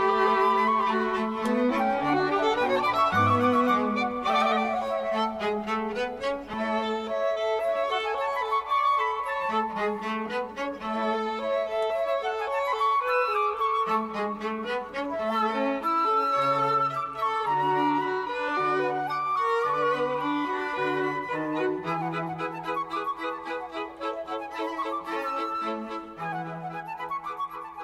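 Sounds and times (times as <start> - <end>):
flute quartet playing a fast classical movement: 0.0 - 27.8.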